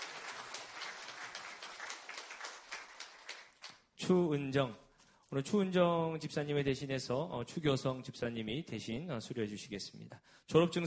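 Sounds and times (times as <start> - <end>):
audience applause at graduation: 0.0 - 3.7
speech: 4.0 - 10.8.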